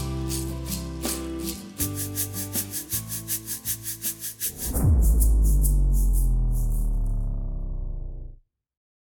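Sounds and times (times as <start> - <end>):
shaker: 0.0 - 7.2.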